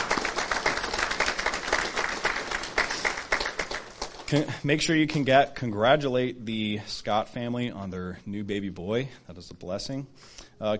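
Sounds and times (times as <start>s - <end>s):
people clapping: 0.0s - 4.6s
speech: 4.3s - 10.7s.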